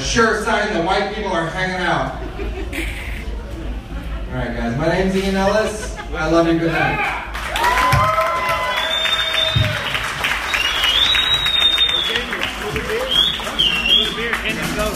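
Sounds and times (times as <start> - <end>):
speech: 0.2 - 3.0, 4.3 - 7.7
laughter: 1.8 - 7.3
audience whoops: 6.9 - 13.5
audience applause at a stand-up comedy show: 7.0 - 14.9.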